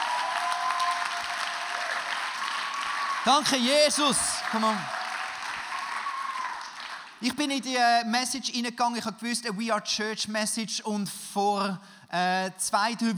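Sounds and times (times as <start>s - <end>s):
audience applause: 0.0s - 7.2s
speech: 3.2s - 5.0s, 7.2s - 13.1s.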